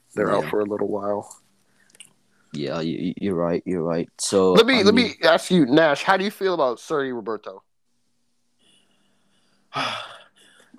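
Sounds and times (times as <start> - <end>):
speech: 0.2 - 1.4, 2.5 - 7.7, 9.7 - 10.1
deep breath: 8.6 - 10.7.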